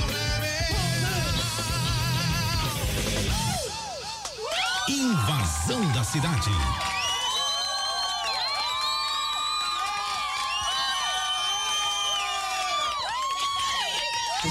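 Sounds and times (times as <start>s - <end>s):
crowd cheering and shouting: 0.0s - 14.5s
crowd clapping: 4.1s - 14.5s
speech: 4.9s - 6.9s.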